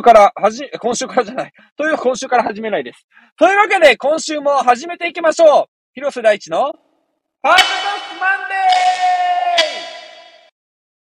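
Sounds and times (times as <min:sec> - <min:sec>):
speech: 0:00.0 - 0:06.8, 0:07.4 - 0:09.3
title call jingle with reverb effect: 0:07.6 - 0:10.5.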